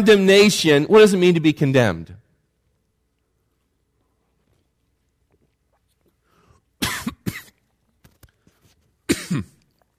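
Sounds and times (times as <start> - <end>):
speech: 0.0 - 2.2
person coughing after a drink went down the wrong pipe: 6.8 - 7.6, 9.1 - 9.7.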